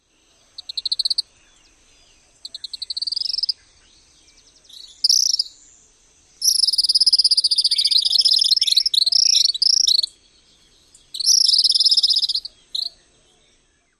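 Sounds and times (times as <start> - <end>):
calls: 0.4 - 1.4, 2.1 - 3.8, 6.4 - 13.2.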